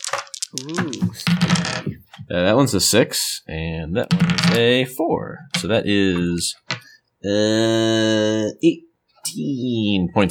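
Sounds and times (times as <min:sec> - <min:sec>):
skull dice being rolled: 0:00.0 - 0:02.3, 0:04.0 - 0:04.6
speech: 0:00.5 - 0:10.2.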